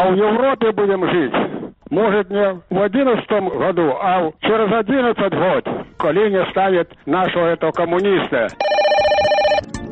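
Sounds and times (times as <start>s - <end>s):
speech: 0.0s - 8.6s
telephone ringing: 8.5s - 9.8s.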